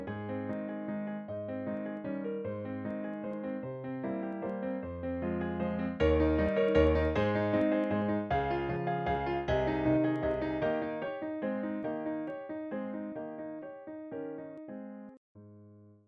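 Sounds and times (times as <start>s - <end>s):
piano waltz: 0.0s - 15.2s.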